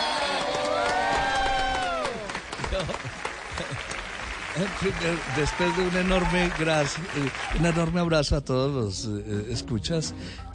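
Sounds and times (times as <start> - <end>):
audience applause: 0.0 - 8.1
speech: 2.8 - 3.7, 4.6 - 10.5.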